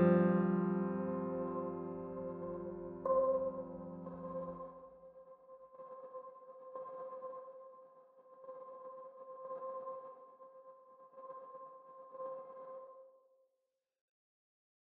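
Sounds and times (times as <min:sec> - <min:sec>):
piano: 0:00.0 - 0:04.9.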